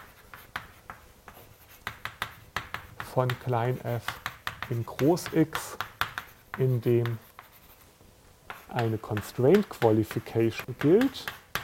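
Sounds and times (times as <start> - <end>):
handwriting during a mathematics lecture on optimization: 0.0 - 7.9, 8.5 - 11.6
speech: 3.2 - 5.8, 6.6 - 7.2, 8.7 - 11.4.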